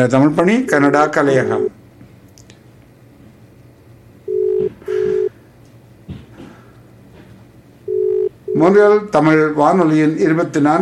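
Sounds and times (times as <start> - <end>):
speech: 0.0 - 1.8, 8.6 - 10.7
outgoing telephone call ringback tone during a radio call-in: 4.3 - 5.3, 7.9 - 8.6.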